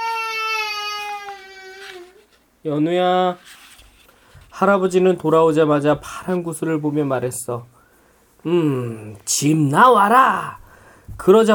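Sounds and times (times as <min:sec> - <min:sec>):
baby crying: 0:00.0 - 0:02.3
speech: 0:02.6 - 0:03.6, 0:04.6 - 0:07.8, 0:08.4 - 0:11.5.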